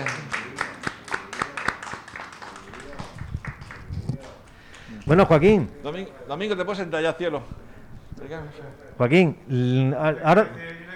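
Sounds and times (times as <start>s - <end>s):
audience applause: 0.0s - 5.2s
speech: 5.1s - 7.6s, 8.3s - 10.7s.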